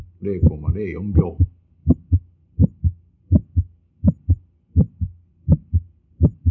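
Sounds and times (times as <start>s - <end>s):
speech: 0.2s - 1.5s
heart sounds with ejection click: 1.4s - 6.4s.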